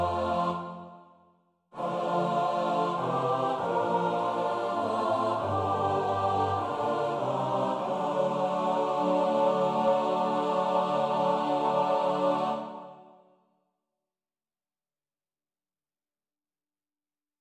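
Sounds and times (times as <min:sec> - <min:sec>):
soprano alto tenor bass choir: 0:00.0 - 0:13.4.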